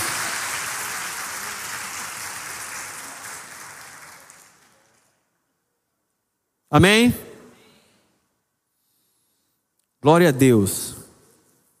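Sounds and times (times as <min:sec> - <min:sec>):
audience applauding: 0:00.0 - 0:05.3
speech: 0:06.7 - 0:07.3, 0:10.0 - 0:11.0.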